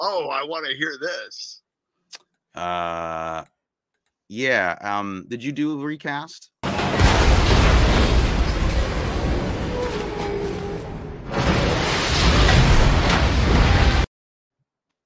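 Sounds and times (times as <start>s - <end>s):
speech: 0.0s - 1.6s, 2.6s - 3.6s, 4.3s - 7.0s
car exploding off a barge deck: 6.6s - 10.2s, 11.2s - 14.1s.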